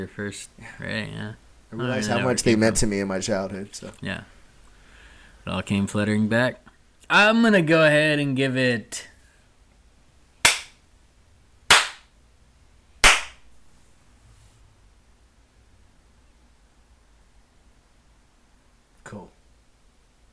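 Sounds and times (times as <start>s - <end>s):
speech: 0.0s - 4.4s, 5.4s - 9.1s
loud sharp hand slaps: 10.4s - 10.8s, 11.7s - 12.1s, 13.0s - 13.4s
soft brief rustle: 13.6s - 14.8s.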